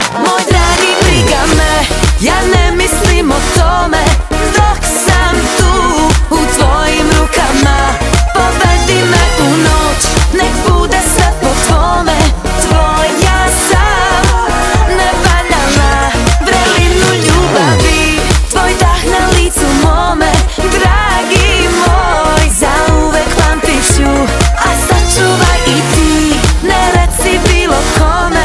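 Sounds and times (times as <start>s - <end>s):
funk music: 0.0s - 28.4s.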